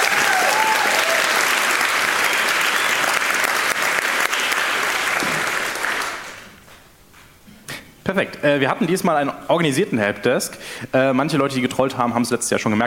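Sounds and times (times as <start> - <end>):
applause: 0.0 - 6.6
speech: 8.2 - 12.8.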